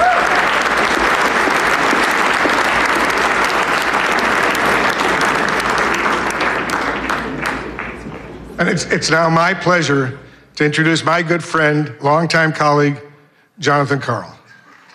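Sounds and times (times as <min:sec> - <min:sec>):
audience applause: 0:00.0 - 0:08.6
speech: 0:08.6 - 0:14.4.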